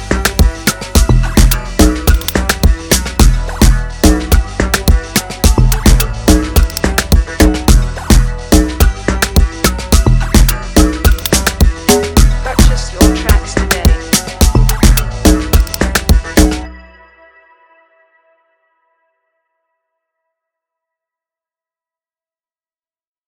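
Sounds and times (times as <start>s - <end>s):
beat: 0.0s - 16.7s.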